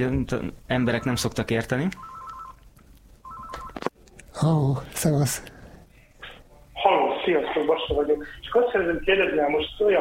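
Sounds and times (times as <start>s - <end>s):
speech: 0.0s - 2.1s, 4.4s - 5.5s, 7.2s - 9.9s
telephone touch-tone dialing beeps of a caller phoning a radio show: 2.0s - 2.6s, 3.2s - 3.8s.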